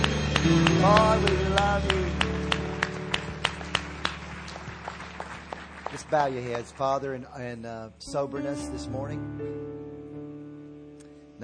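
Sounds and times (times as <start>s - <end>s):
audience clapping: 0.0s - 7.6s
speech: 0.4s - 2.2s, 5.9s - 9.6s.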